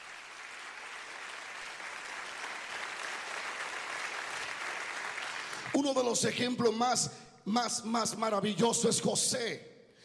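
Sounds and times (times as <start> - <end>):
audience applause: 0.0 - 5.8
speech: 5.8 - 9.7.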